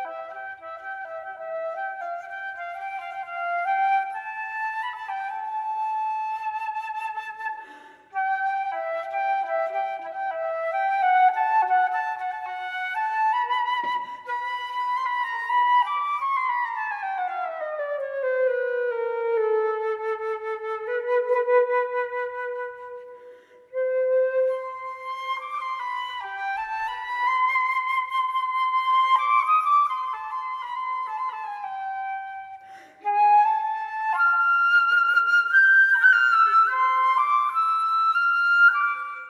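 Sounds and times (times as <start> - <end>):
flute melody: 0.0 - 39.2.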